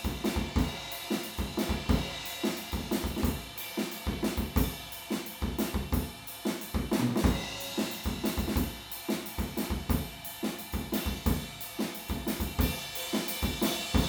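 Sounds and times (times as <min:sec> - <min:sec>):
drums recorded with PZM omni stereo microphones: 0:00.0 - 0:14.0.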